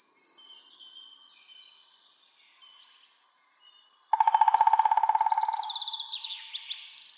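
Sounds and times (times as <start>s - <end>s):
woodpeckers Picidae: 4.1s - 6.7s.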